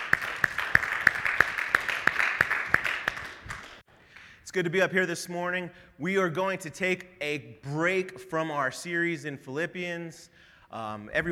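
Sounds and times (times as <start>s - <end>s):
audience applause: 0.0s - 3.8s
speech: 4.5s - 11.3s.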